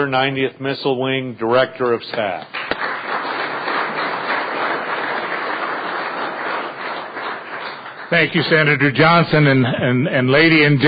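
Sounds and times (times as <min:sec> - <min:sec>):
speech: 0:00.0 - 0:02.6, 0:08.1 - 0:10.8
audience applause: 0:02.6 - 0:09.0.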